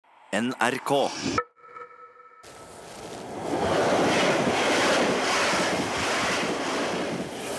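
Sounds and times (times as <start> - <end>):
speech: 0.3 - 1.5
train rushing past Dilling station: 2.5 - 7.5.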